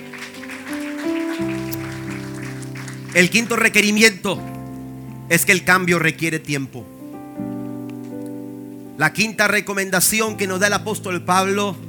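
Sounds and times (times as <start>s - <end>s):
audience applauding: 0.0s - 4.2s
speech: 3.2s - 4.5s, 5.3s - 6.9s, 9.0s - 11.8s.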